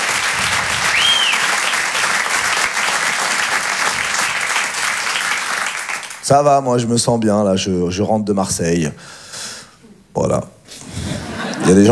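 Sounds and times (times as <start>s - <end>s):
audience applause: 0.0s - 6.3s
speech: 6.3s - 9.3s, 10.2s - 10.5s, 11.7s - 11.8s
laughter: 10.8s - 11.8s.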